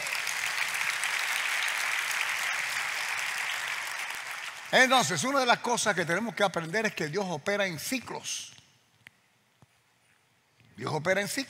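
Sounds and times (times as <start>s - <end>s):
audience applause: 0.0s - 5.2s
speech: 4.7s - 8.6s, 10.8s - 11.4s.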